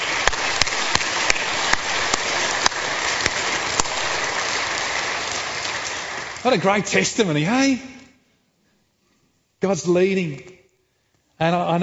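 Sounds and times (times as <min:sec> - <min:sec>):
audience clapping during a sermon: 0:00.0 - 0:08.0
speech: 0:06.4 - 0:07.9, 0:09.6 - 0:10.5, 0:11.4 - 0:11.8.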